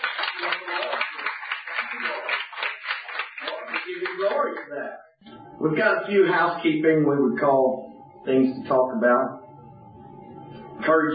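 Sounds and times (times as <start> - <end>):
audience clapping for first-time visitors: 0.0 - 4.9
speech: 5.6 - 9.4, 10.9 - 11.1.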